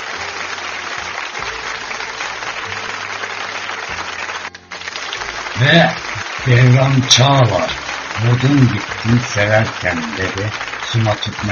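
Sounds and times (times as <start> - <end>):
applause for a poet's verses on a Turkish show: 0.0 - 11.4
speech: 5.6 - 11.4.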